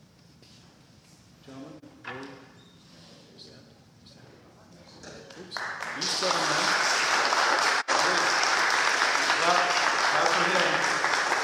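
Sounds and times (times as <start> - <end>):
audience clapping: 5.3 - 11.4.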